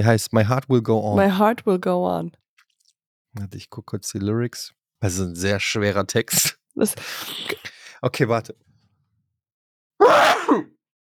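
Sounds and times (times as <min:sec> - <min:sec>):
speech: 0:00.0 - 0:02.4, 0:03.4 - 0:08.7
person sneezing: 0:10.0 - 0:10.7.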